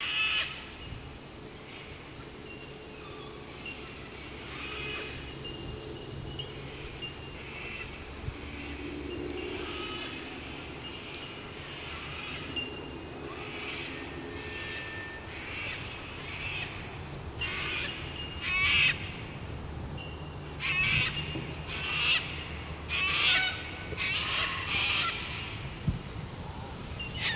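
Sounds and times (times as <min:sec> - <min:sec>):
bellbirds calling: 0:00.0 - 0:25.8, 0:26.9 - 0:27.3.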